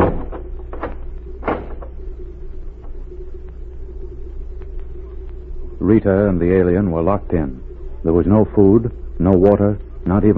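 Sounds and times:
heavy wooden barn door banging shut: 0:00.0 - 0:01.9
speech: 0:05.9 - 0:10.3.

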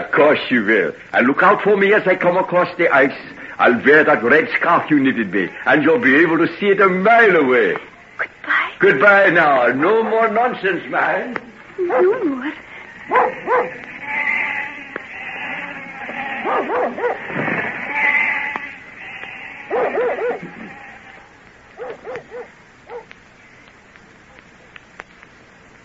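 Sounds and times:
speech: 0:00.1 - 0:13.9
flock of sheep bleating: 0:12.2 - 0:21.3.

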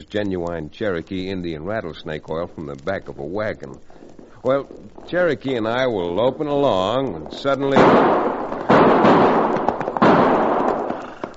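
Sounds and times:
speech: 0:00.0 - 0:08.3
gunshots: 0:07.5 - 0:11.3.

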